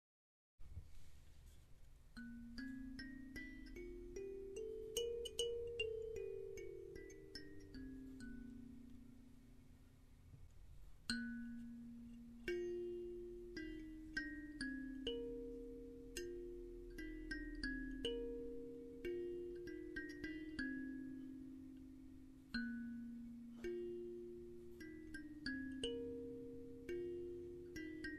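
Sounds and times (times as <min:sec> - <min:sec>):
kalimba: 0:02.2 - 0:09.8, 0:11.1 - 0:28.1.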